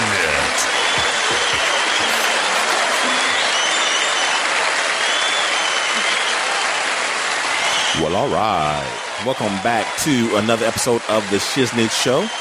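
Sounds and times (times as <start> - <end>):
laughter: 0.0 - 4.7, 8.0 - 12.3
audience applause at the start of a comedy show: 0.0 - 12.3
speech: 8.2 - 12.3.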